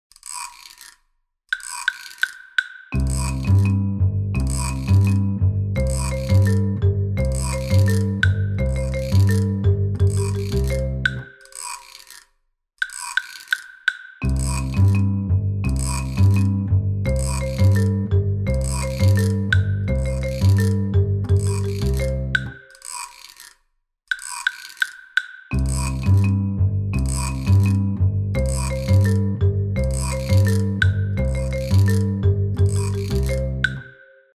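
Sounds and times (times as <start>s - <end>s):
instrumental music: 1.6s - 12.1s, 12.8s - 23.4s, 24.1s - 34.3s.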